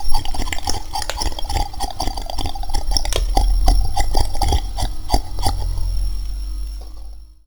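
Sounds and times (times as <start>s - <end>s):
sticky slurp: 0.0s - 6.0s.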